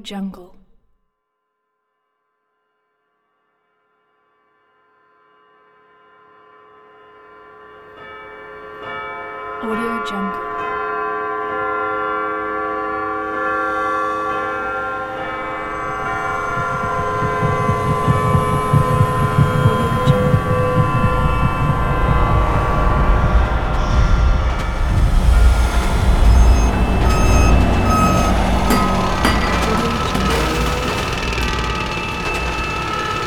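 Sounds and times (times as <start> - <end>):
church bells in an eerie city montage: 8.0 - 33.1.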